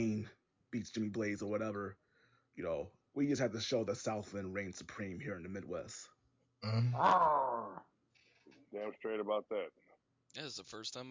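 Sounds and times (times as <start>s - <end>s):
speech: 0.0s - 2.0s, 2.6s - 7.9s, 8.7s - 11.0s
person growling: 6.6s - 7.8s.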